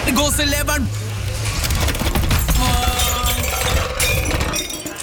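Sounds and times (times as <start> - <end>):
speech: 0.1 - 1.0
store shelf crashing down with breaking glass and falling goods: 1.5 - 5.0.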